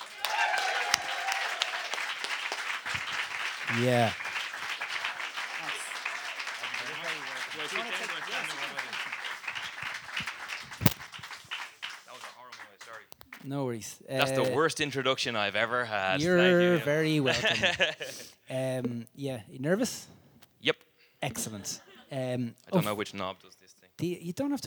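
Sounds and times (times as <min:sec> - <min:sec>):
cheering: 0:00.0 - 0:13.2
audience applause: 0:00.0 - 0:13.4
laughter: 0:00.0 - 0:18.4, 0:21.3 - 0:23.4
speech: 0:03.7 - 0:04.2, 0:07.7 - 0:08.9, 0:13.5 - 0:20.1, 0:21.4 - 0:24.6.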